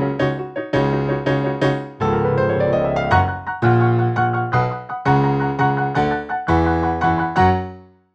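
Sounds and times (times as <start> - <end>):
backing track: 0.2 - 7.6.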